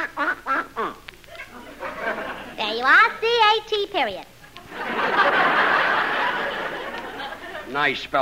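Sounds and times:
duck quacking: 0:00.0 - 0:01.0
laughter: 0:00.8 - 0:02.6, 0:04.5 - 0:08.0
speech: 0:03.6 - 0:04.3, 0:07.7 - 0:08.2.

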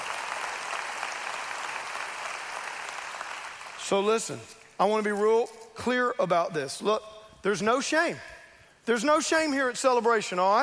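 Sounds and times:
audience applause: 0:00.0 - 0:03.8
speech: 0:03.9 - 0:10.6.

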